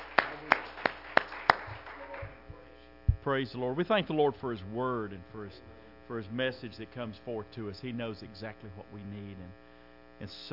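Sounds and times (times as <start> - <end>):
congregation hand claps in praise at a church service: 0.0 - 2.5
low noise: 0.0 - 10.5
speech: 3.2 - 9.6, 10.2 - 10.5.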